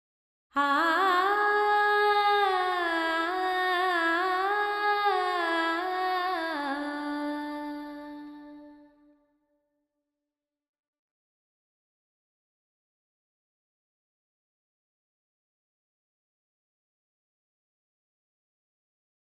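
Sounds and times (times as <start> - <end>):
woman singing with reverb in D: 0.6 - 9.0.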